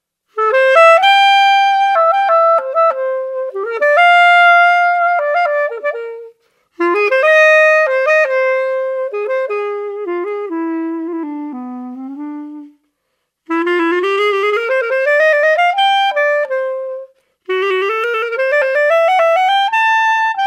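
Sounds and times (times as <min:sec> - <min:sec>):
improvised music: 0:00.3 - 0:20.4.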